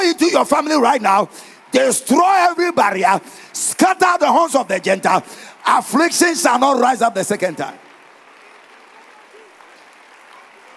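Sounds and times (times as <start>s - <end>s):
audience clapping: 0.0s - 10.7s
speech: 0.1s - 7.8s.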